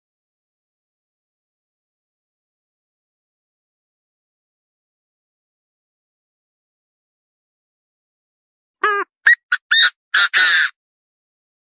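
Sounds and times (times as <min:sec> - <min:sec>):
partridge calling: 0:08.8 - 0:10.7.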